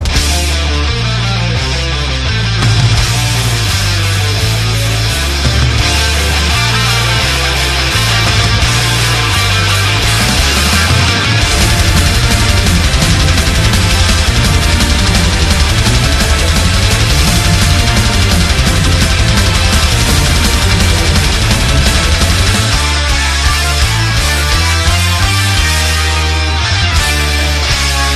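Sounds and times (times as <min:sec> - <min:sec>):
guitar ringtone: 0:00.1 - 0:28.1.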